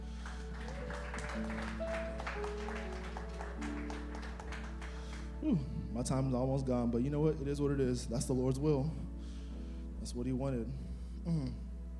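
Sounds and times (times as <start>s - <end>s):
audience applause: 0.0s - 5.4s
speech: 1.4s - 2.9s, 5.4s - 9.1s, 10.0s - 11.6s.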